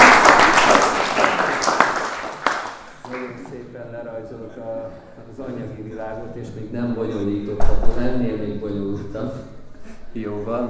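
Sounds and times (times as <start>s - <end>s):
audience applause at a lecture: 0.0s - 3.5s
speech: 4.3s - 9.5s, 10.1s - 10.6s.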